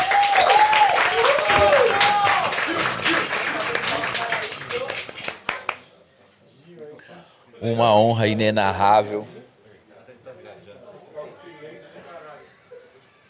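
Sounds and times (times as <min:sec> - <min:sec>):
applause: 0:00.0 - 0:05.9
speech: 0:07.6 - 0:09.4.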